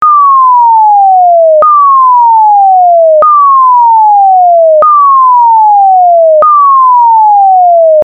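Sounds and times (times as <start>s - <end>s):
tone: 0.0s - 8.0s.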